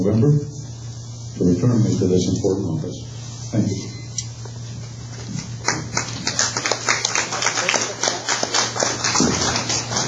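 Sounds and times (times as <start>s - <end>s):
speech: 0.0s - 0.6s, 1.3s - 3.9s
audience applauding: 5.6s - 10.0s.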